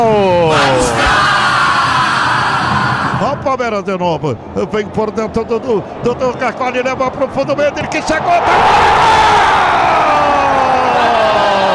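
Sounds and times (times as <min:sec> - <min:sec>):
Palmeiras supporters yelling in a stadium during a football match against Fortaleza: 0:00.1 - 0:03.4, 0:07.6 - 0:11.7
speech: 0:03.4 - 0:10.0.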